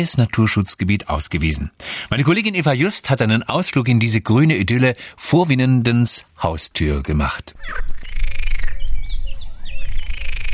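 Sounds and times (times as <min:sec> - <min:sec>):
speech: 0:00.0 - 0:07.9
yellow-bellied toads and water frogs calling: 0:07.5 - 0:10.5
blackcap warbling: 0:07.6 - 0:10.5.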